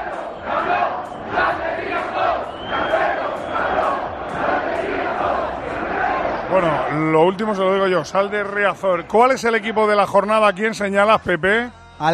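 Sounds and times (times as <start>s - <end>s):
large stadium crowd chanting in unison: 0.0s - 7.3s
speech: 6.5s - 12.1s.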